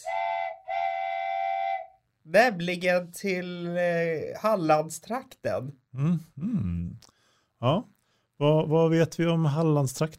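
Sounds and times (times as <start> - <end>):
train whistle sounding as a train departs: 0.0 - 2.0
speech: 2.3 - 10.1.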